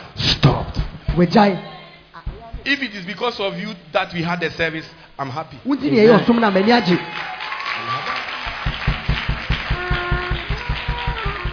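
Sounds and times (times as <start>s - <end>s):
speech: 1.2s - 1.7s, 2.6s - 7.3s
clapping: 6.3s - 11.5s.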